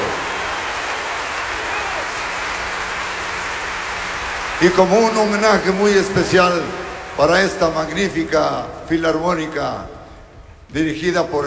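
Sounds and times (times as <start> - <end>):
audience applause: 0.0 - 8.7
speech: 4.6 - 9.9, 10.7 - 11.4.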